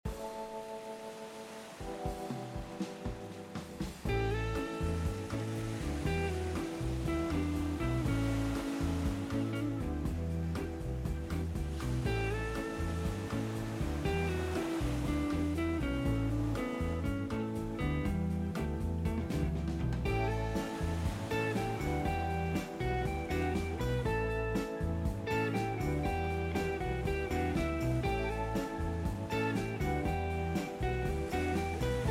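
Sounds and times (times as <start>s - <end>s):
background music: 0.1s - 32.0s.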